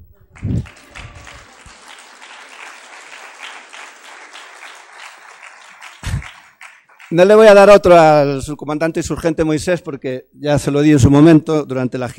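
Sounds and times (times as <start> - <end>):
audience applause in Galicia: 0.3 - 7.2
speech: 7.1 - 12.1.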